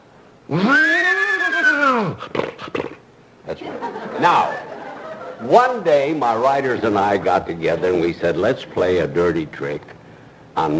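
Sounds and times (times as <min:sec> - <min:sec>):
speech: 0:00.5 - 0:00.9, 0:04.3 - 0:04.6, 0:05.4 - 0:10.0, 0:10.6 - 0:10.7
person imitating a horse whinny: 0:00.5 - 0:03.0
laughter: 0:03.6 - 0:05.7.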